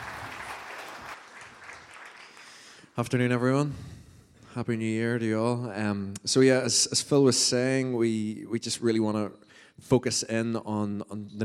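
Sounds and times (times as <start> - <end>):
audience applause: 0.0 - 2.8
speech: 3.0 - 11.4.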